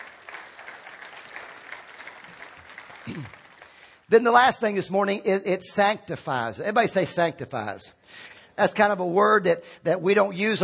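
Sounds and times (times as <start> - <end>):
audience clapping: 0.0 - 4.5
speech: 3.1 - 3.4, 4.1 - 10.6.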